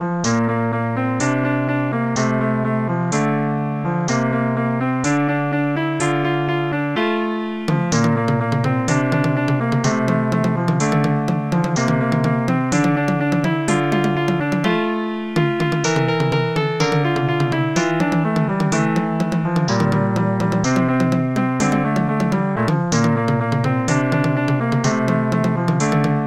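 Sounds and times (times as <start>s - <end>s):
final music: 0.0s - 26.2s.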